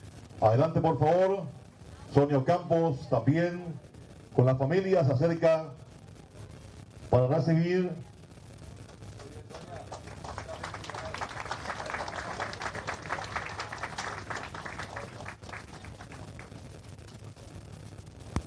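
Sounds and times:
speech: 0:00.4 - 0:05.8, 0:07.1 - 0:08.1
audience applause at an award ceremony: 0:08.9 - 0:17.2.

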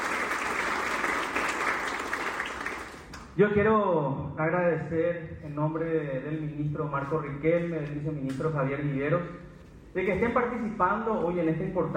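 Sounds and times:
audience applause: 0:00.0 - 0:03.2
speech: 0:03.4 - 0:09.4, 0:10.0 - 0:11.9.

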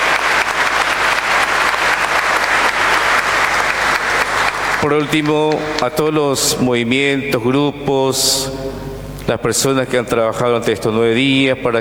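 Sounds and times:
strong applause: 0:00.0 - 0:06.1
speech: 0:04.8 - 0:11.7.

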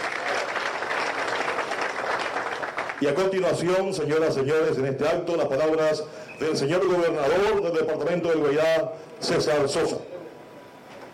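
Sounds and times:
audience applause at a formal public ceremony: 0:00.0 - 0:03.2
speech: 0:03.0 - 0:10.1.

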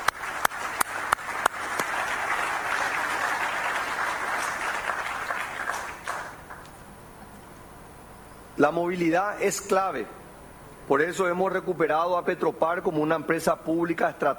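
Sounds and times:
audience applause: 0:00.0 - 0:06.7
speech: 0:08.6 - 0:10.2, 0:10.9 - 0:14.3.

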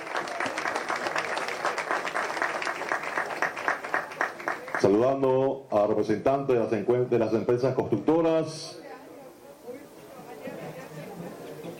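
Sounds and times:
audience applause: 0:00.0 - 0:05.0
speech: 0:04.8 - 0:08.8.

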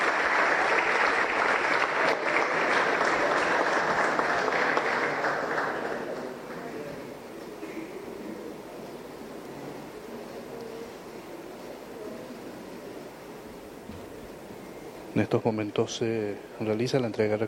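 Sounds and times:
crowd applause: 0:00.0 - 0:07.2
speech: 0:15.2 - 0:17.4.

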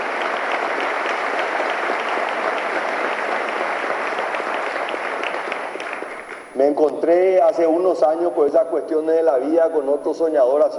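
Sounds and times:
audience applause: 0:00.0 - 0:06.6
speech: 0:06.6 - 0:10.7.

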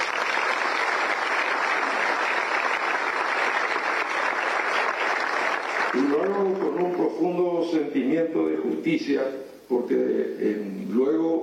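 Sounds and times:
audience applause: 0:00.0 - 0:07.1
speech: 0:07.9 - 0:11.4.

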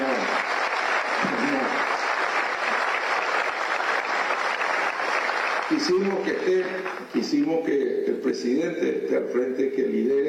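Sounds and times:
audience applause for a president: 0:00.0 - 0:07.1
speech: 0:05.7 - 0:10.2.

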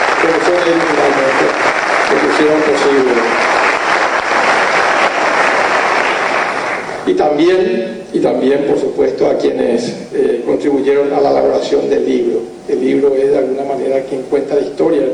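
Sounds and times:
audience applause: 0:00.0 - 0:07.1
speech: 0:00.3 - 0:03.6, 0:07.1 - 0:15.1.

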